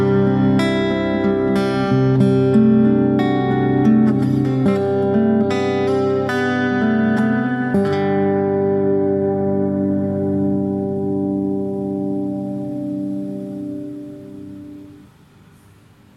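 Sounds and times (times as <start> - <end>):
music: 0.0 - 16.1.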